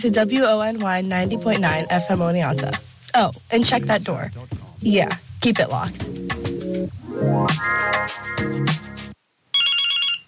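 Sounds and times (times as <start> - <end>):
speech: 0.0 - 6.2, 6.9 - 8.8
shrill buzzing electronic phone ring: 9.5 - 10.2
phone ringtone melody: 9.6 - 10.2.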